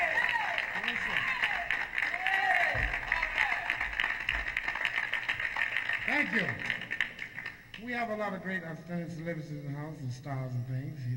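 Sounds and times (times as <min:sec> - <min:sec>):
cheers and whoops: 0:00.0 - 0:03.8
crowd applauding: 0:00.0 - 0:07.8
speech: 0:06.3 - 0:06.7, 0:07.9 - 0:11.1.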